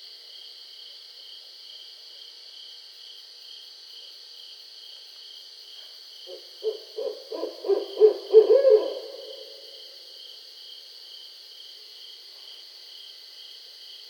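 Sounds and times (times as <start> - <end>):
barred owl hooting: 6.3 - 10.0.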